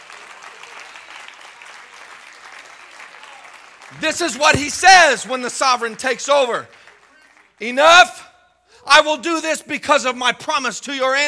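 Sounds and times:
audience clapping hands: 0.0s - 7.6s
speech: 3.9s - 6.8s, 7.6s - 8.2s, 8.9s - 11.2s.

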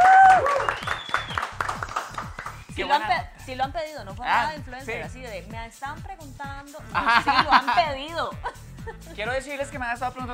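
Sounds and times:
audience applause: 0.0s - 2.7s
speech: 2.8s - 10.3s
laughter: 6.8s - 9.3s.

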